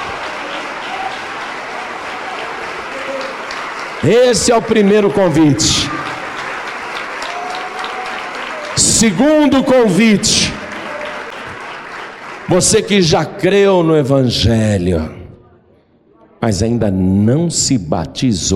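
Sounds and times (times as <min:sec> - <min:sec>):
church audience applauding: 0:00.0 - 0:13.5
speech: 0:04.0 - 0:06.0, 0:09.0 - 0:10.6, 0:12.5 - 0:15.2, 0:16.4 - 0:18.5.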